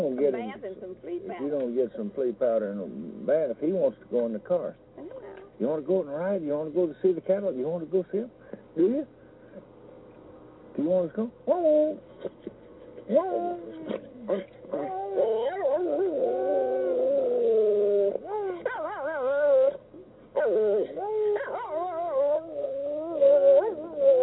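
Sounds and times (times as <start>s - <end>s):
speech: 0.2s - 4.9s, 5.6s - 9.7s, 10.8s - 16.2s, 20.4s - 21.6s
dog howling: 11.5s - 12.0s, 13.1s - 24.2s.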